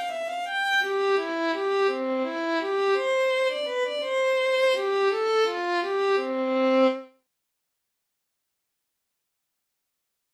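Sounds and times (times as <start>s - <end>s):
musette: 0.0s - 7.2s.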